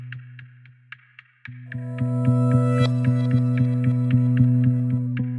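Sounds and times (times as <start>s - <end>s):
reversed music without piano: 1.7s - 5.3s.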